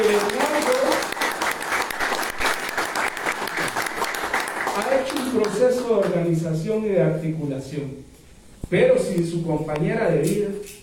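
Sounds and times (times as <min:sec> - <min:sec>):
audience applause: 0:00.0 - 0:05.6
speech: 0:06.7 - 0:08.1, 0:08.7 - 0:10.8.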